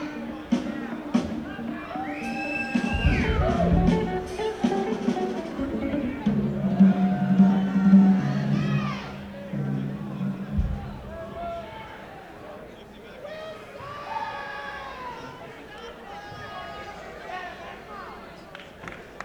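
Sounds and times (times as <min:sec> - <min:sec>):
instrument tuning: 0:01.6 - 0:11.4.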